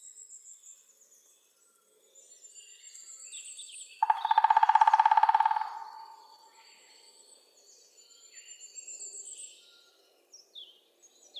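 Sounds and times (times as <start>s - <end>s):
woodpeckers Picidae: 4.0s - 6.4s.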